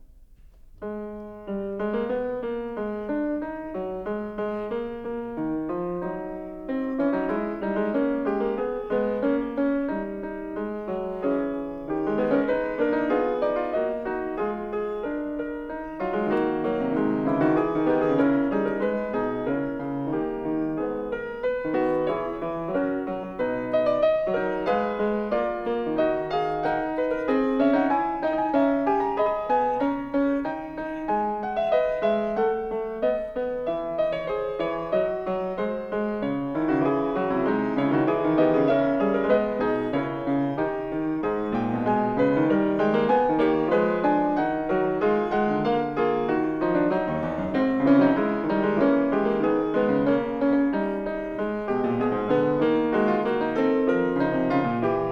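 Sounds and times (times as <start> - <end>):
keyboard fugue: 0.0 - 55.0.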